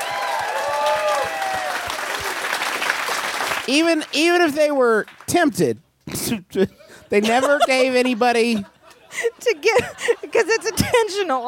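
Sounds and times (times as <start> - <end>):
audience applause: 0.0 - 4.4
speech: 3.7 - 11.4
laughter: 6.6 - 11.4.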